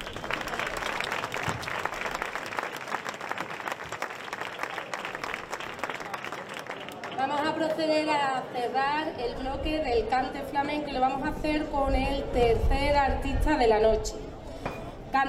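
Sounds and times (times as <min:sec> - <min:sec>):
festival audience applauding: 0:00.0 - 0:07.9
speech: 0:07.6 - 0:14.2.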